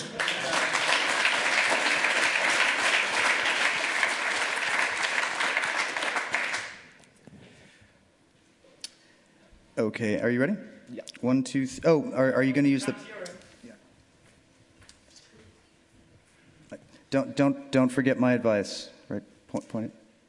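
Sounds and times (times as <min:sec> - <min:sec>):
audience applause: 0:00.0 - 0:07.0
speech: 0:09.8 - 0:13.2, 0:17.1 - 0:20.2.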